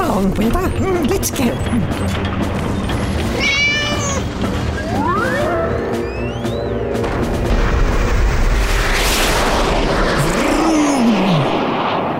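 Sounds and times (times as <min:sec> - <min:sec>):
speech: 0:00.2 - 0:02.7
cat meowing: 0:03.3 - 0:04.3
rising whistling tones: 0:04.7 - 0:07.0
rocket blasting off and roaring: 0:07.3 - 0:12.1.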